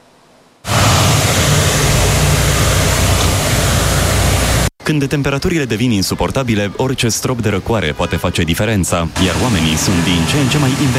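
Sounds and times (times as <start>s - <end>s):
snow cannon running in city square: 0.6s - 4.7s, 9.2s - 10.9s
speech: 4.9s - 10.9s.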